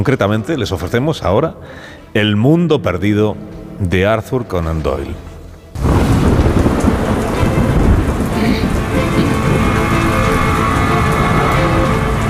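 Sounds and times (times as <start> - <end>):
speech: 0.0 - 5.3
heavy rain: 5.8 - 12.2.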